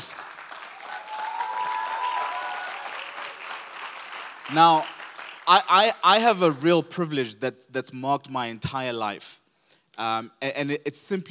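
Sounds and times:
audience applause welcoming a speaker to the stage: 0.0 - 5.6
speech: 4.5 - 4.9, 5.5 - 9.4, 10.0 - 11.2.

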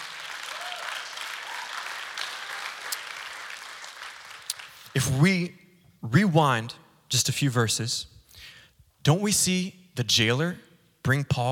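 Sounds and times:
audience clapping: 0.0 - 5.2
speech: 5.0 - 11.4.

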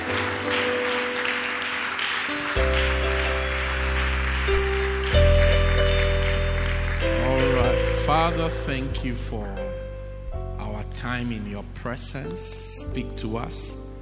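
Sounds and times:
audience clapping hands: 0.0 - 8.4
speech: 8.1 - 9.8, 11.0 - 13.8.

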